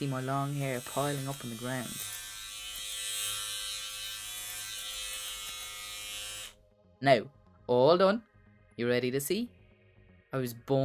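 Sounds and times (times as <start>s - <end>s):
speech: 0.0s - 2.2s, 7.0s - 9.6s, 10.3s - 10.8s
electric hair clippers buzzing: 0.0s - 6.6s.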